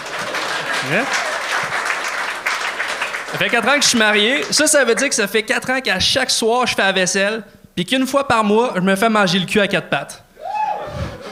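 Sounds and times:
audience applause: 0.0s - 5.2s
speech: 0.8s - 1.3s, 3.3s - 10.2s.

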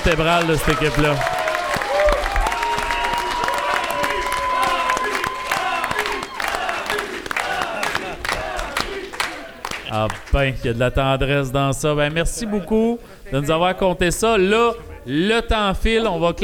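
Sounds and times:
speech: 0.0s - 1.4s, 9.9s - 16.4s
audience applause and cheering: 0.0s - 10.6s.

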